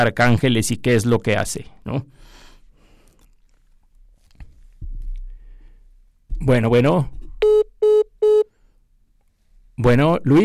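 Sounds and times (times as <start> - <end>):
speech: 0.0 - 2.3, 6.4 - 7.2, 9.8 - 10.4
short electronic telephone beeps after a dropped call: 7.4 - 8.5.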